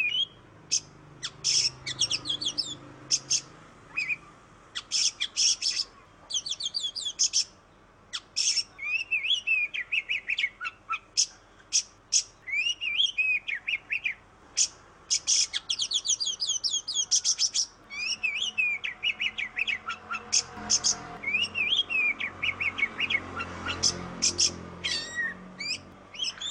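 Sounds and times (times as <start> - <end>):
Oriental magpie-robin singing: 0.0 - 26.5.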